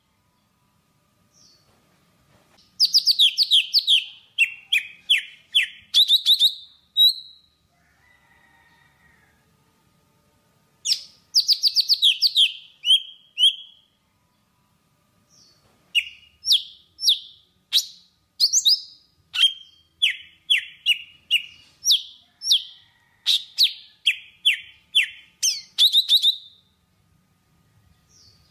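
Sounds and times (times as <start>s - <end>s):
Java sparrow singing: 2.8s - 7.5s, 10.9s - 13.8s, 16.0s - 26.6s.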